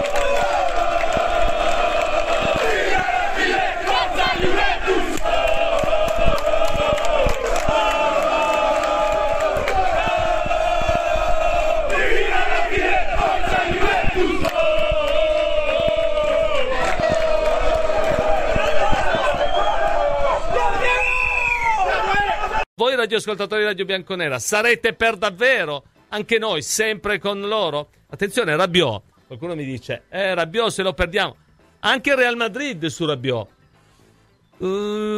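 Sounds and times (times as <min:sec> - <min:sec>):
football fans shouting: 0:00.0 - 0:22.7
speech: 0:23.1 - 0:33.6, 0:34.6 - 0:35.1.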